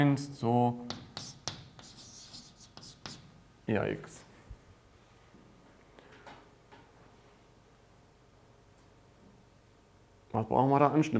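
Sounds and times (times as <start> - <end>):
speech: 0.0 - 1.0, 3.7 - 4.2, 10.3 - 11.1
pen or pencil scratching while handwriting: 0.9 - 3.3
faint rubbing: 0.9 - 3.4.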